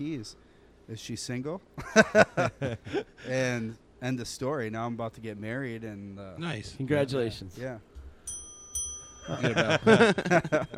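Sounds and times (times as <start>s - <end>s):
speech: 0.0s - 7.9s, 9.3s - 10.7s
laughter: 1.8s - 3.2s, 9.3s - 10.7s
bell ringing: 8.3s - 10.7s.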